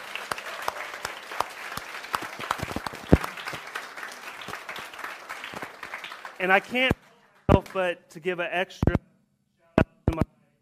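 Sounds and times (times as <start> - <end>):
audience clapping: 0.0 - 8.0
speech: 6.4 - 7.0, 7.7 - 9.0.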